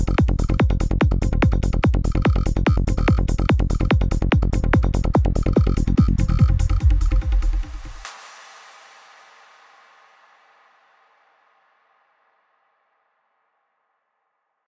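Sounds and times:
bass: 0:00.0 - 0:08.1
kick drum: 0:00.0 - 0:08.3.

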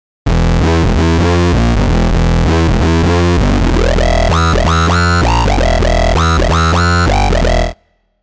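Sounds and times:
pulse-width modulated synth: 0:00.4 - 0:07.8.

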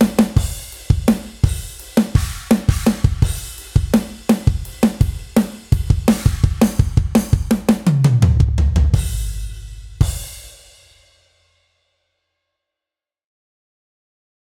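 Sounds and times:
gospel drum beat: 0:00.0 - 0:10.5.

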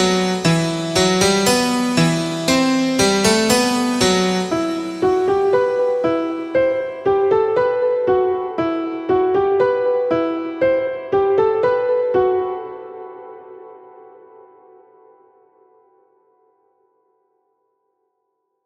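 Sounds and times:
pianos playing: 0:00.0 - 0:14.9.

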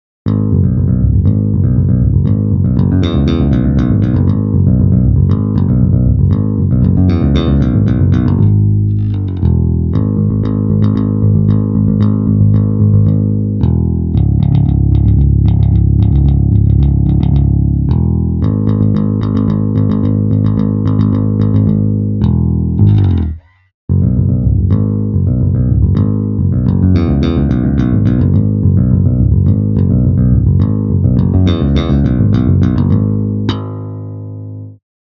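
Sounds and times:
fingered rock bass guitar bridge: 0:00.2 - 0:34.8.

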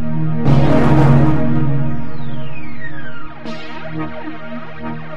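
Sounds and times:
unprocessed synth pad: 0:00.2 - 0:04.9
flanged synth pad: 0:00.5 - 0:03.5.

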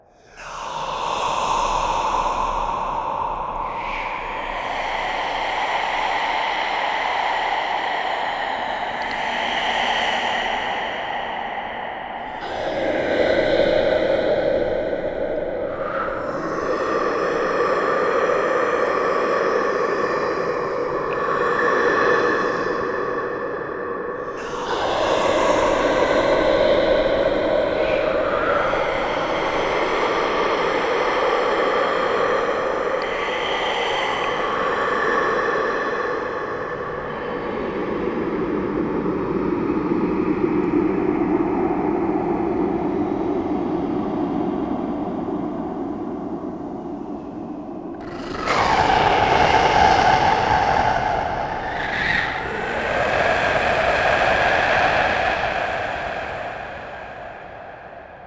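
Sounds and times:
dark ghostly whispers: 0:00.0 - 0:58.2.

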